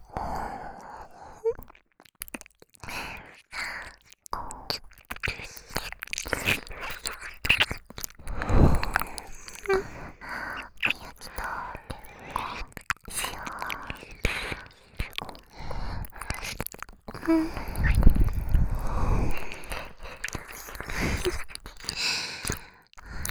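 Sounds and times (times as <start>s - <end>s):
ear licking: 1.5s - 23.2s.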